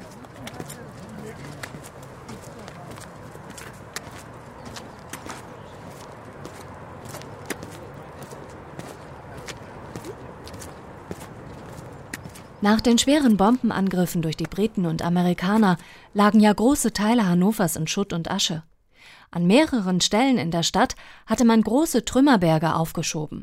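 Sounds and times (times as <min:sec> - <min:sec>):
footsteps on a path past the Maschsee and a bus stop in Hannover: 0:00.0 - 0:14.8
speech: 0:12.6 - 0:18.7, 0:19.3 - 0:23.4.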